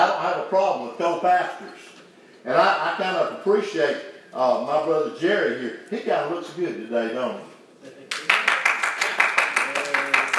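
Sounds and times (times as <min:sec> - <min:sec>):
speech: 0:00.2 - 0:08.4
rhythmic clapping from a few people at a church service: 0:08.0 - 0:10.3.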